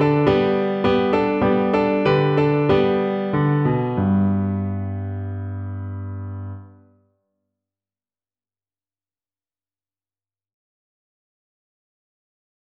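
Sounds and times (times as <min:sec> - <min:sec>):
piano: 0:00.0 - 0:07.1.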